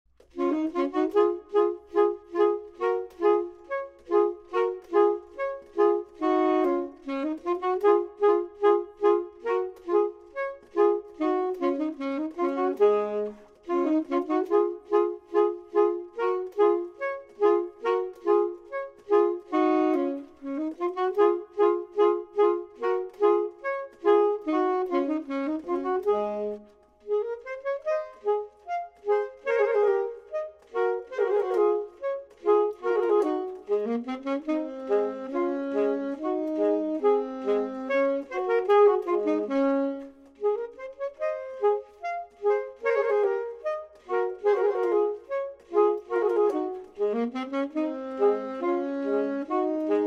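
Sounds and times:
clarinet: 0:00.2 - 0:50.0
saxophone: 0:00.2 - 0:50.0.

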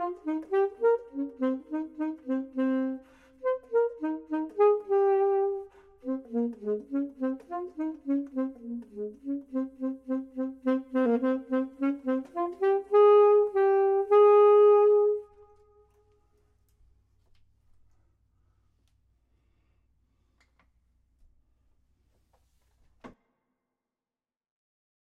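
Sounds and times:
clarinet: 0:00.0 - 0:16.4
saxophone: 0:00.0 - 0:16.6.

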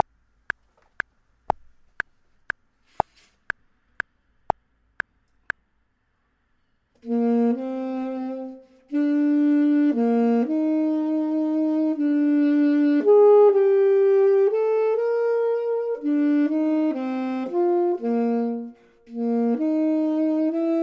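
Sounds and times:
clarinet: 0:07.0 - 0:20.8
saxophone: 0:07.0 - 0:20.8.

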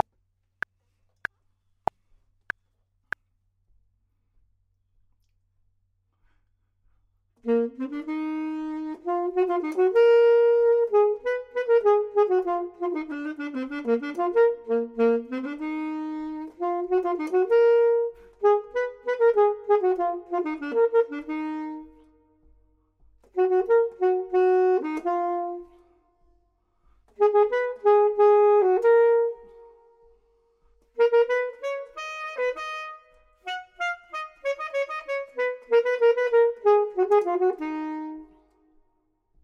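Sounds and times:
clarinet: 0:07.4 - 0:26.4, 0:27.1 - 0:38.9
saxophone: 0:07.4 - 0:39.0.

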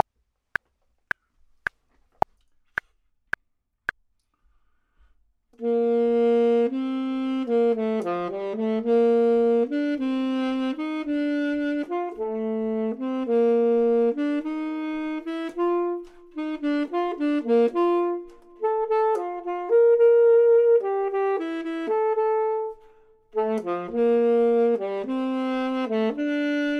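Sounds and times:
clarinet: 0:05.6 - 0:26.7
saxophone: 0:05.6 - 0:26.7.

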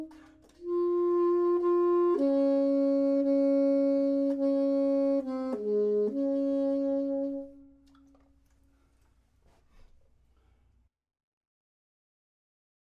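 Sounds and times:
clarinet: 0:00.0 - 0:08.3
saxophone: 0:00.0 - 0:08.3.

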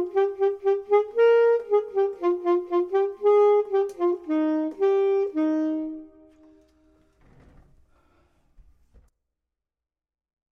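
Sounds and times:
clarinet: 0:00.0 - 0:07.2
saxophone: 0:00.0 - 0:07.5.

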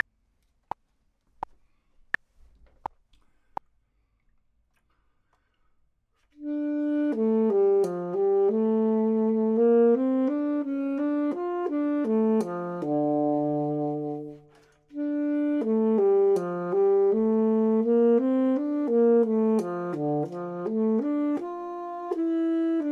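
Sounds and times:
clarinet: 0:06.3 - 0:22.9
saxophone: 0:06.3 - 0:22.9.

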